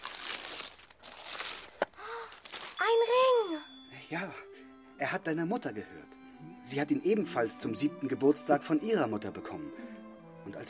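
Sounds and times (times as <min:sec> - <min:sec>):
gift wrapping paper being torn open: 0:00.0 - 0:02.9
speech: 0:04.1 - 0:10.6.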